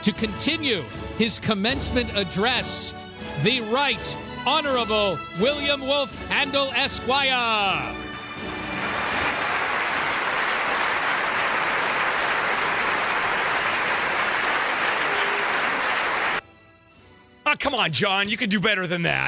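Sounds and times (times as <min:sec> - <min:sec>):
speech: 0:00.0 - 0:08.0, 0:17.6 - 0:19.2
crowd applause sound effect: 0:08.2 - 0:16.4.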